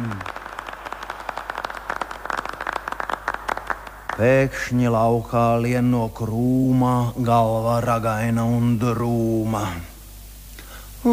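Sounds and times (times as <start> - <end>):
applause: 0.0 - 4.8
speech: 4.2 - 9.9.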